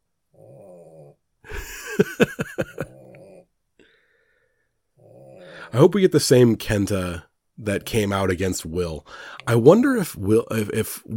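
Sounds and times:
pet Teddy snoring: 0.3s - 1.2s, 5.0s - 5.5s
laughter: 1.5s - 3.1s
speech: 2.0s - 2.6s, 5.7s - 11.1s.

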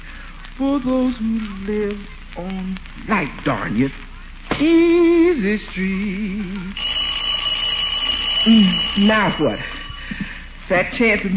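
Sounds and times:
speech: 0.6s - 6.9s, 8.4s - 11.3s
doorbell ringing: 6.8s - 10.4s.

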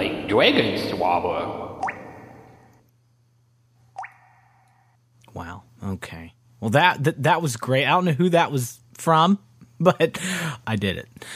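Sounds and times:
low steady hum: 0.0s - 11.3s
speech: 0.3s - 1.7s, 5.4s - 11.3s
rain drops starting to fall: 1.8s - 2.2s, 4.0s - 4.2s.

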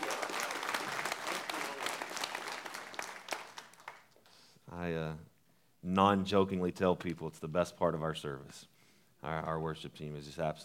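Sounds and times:
audience applause, clapping hands: 0.0s - 4.4s
speech: 4.9s - 10.6s.

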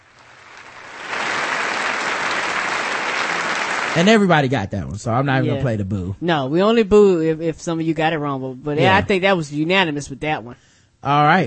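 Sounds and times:
applause: 0.0s - 4.3s
speech: 4.0s - 11.4s.

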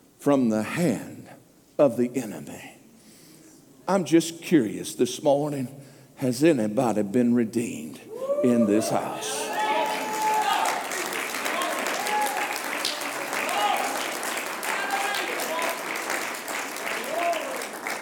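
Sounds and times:
speech: 0.2s - 1.1s, 1.8s - 2.8s, 3.9s - 9.5s
audience clapping: 9.5s - 17.9s.

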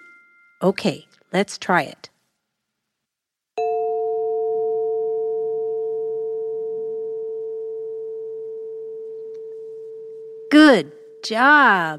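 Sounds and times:
speech: 0.6s - 2.1s, 10.6s - 11.9s
chime ringing: 3.6s - 11.2s.

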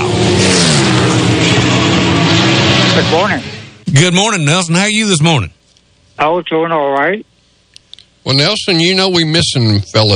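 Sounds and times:
race cars roaring at a racetrack: 0.0s - 4.0s
speech: 3.0s - 5.6s, 6.2s - 7.3s, 8.2s - 10.1s.

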